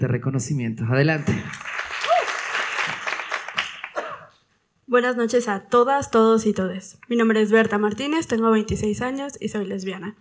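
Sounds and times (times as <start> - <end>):
speech: 0.0 - 1.7, 4.9 - 10.1
audience applause at an awards ceremony: 1.2 - 4.1.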